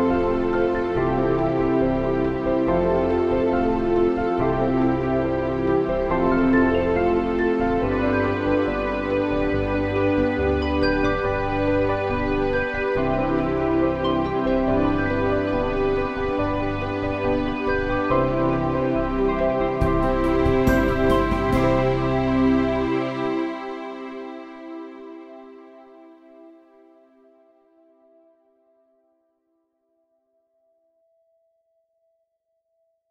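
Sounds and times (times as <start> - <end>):
backing music: 0.0 - 25.9.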